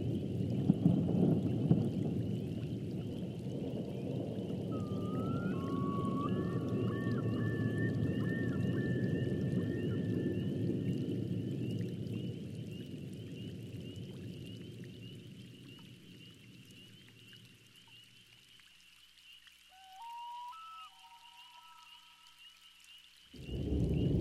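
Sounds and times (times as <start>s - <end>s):
thunderstorm: 0.0s - 16.3s, 23.4s - 24.2s.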